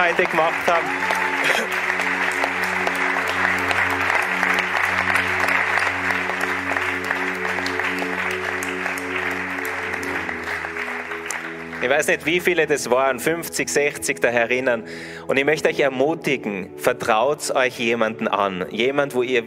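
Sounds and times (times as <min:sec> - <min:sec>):
speech: 0:00.0 - 0:01.9, 0:11.8 - 0:19.4
audience applause: 0:00.0 - 0:12.5.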